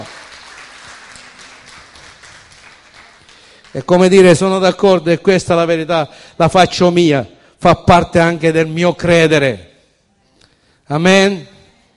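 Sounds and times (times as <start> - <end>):
audience applause: 0.0 - 3.8
speech: 3.8 - 9.7, 10.9 - 11.5.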